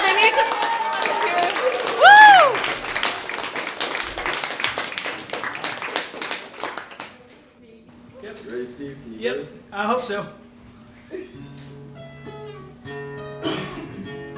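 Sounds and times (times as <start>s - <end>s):
whooping cheer: 0.0s - 3.3s
audience applauding: 0.0s - 7.4s
speech: 9.5s - 10.4s.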